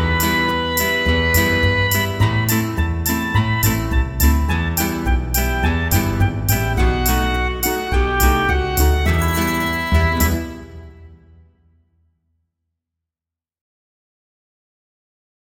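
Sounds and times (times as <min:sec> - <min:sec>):
instrumental music: 0:00.0 - 0:11.5.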